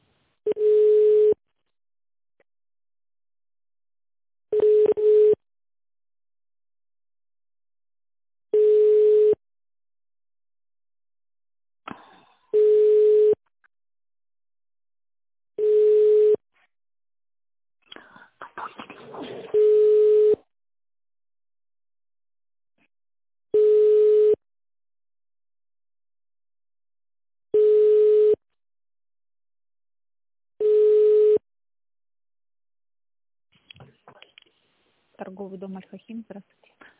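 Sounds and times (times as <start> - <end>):
telephone ringback tone while a call is transferred to a sales department: 0.5 - 1.4, 4.5 - 5.4, 8.6 - 9.4, 12.6 - 13.4, 15.6 - 16.4, 19.6 - 20.4, 23.6 - 24.4, 27.6 - 28.4, 30.6 - 31.4
speech: 35.2 - 36.9.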